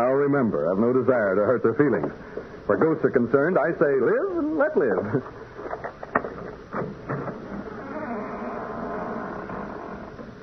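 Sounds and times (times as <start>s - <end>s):
speech: 0.3s - 5.4s
front door hinge squeaking as door opens: 7.6s - 10.2s.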